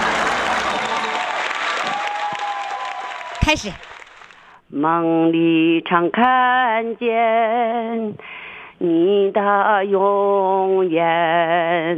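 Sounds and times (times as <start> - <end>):
group applauding: 0.0 - 4.6
speech: 3.5 - 3.9, 4.7 - 11.9.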